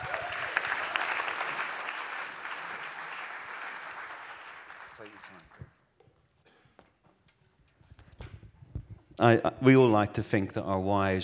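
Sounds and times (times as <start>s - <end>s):
audience applause welcoming a speaker to the stage: 0.0s - 5.7s
speech: 5.0s - 5.8s, 9.2s - 11.2s.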